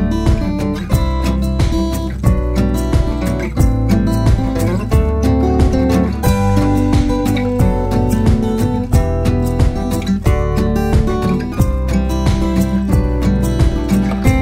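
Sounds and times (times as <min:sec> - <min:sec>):
indie songwriter guitars: 0:00.0 - 0:14.4.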